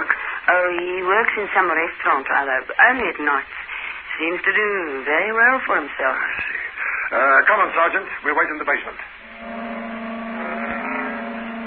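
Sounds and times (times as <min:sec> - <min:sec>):
speech: 0:00.5 - 0:03.6, 0:04.2 - 0:09.1
red sports car engine humming turning into a basement garage: 0:09.2 - 0:11.6.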